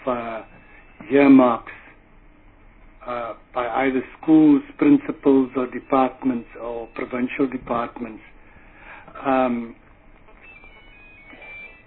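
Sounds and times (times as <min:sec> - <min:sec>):
mobile phone ringing during a meeting: 0:00.0 - 0:01.6, 0:05.4 - 0:08.3, 0:10.3 - 0:11.8
low room murmur: 0:00.0 - 0:11.8
speech: 0:01.1 - 0:01.8, 0:03.8 - 0:08.3, 0:09.2 - 0:09.8.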